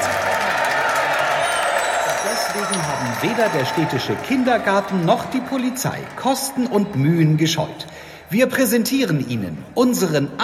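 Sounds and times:
frenzied crowd cheering: 0.0 - 7.6
speech: 3.2 - 10.4.

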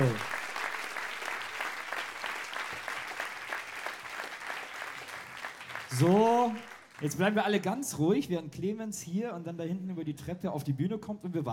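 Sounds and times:
audience applause: 0.0 - 7.4
speech: 6.0 - 11.5.

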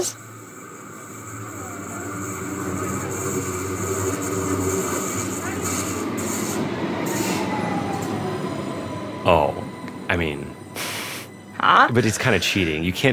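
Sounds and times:
speech: 0.0 - 0.2, 11.8 - 13.1
Stuttgart subway train running: 0.0 - 13.1
high-pitched whine of subway train: 0.0 - 13.1.

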